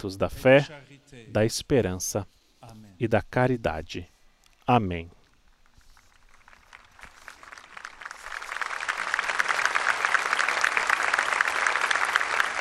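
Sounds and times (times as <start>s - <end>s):
speech: 0.0s - 4.1s, 4.7s - 5.2s
audience applauding: 5.8s - 12.5s.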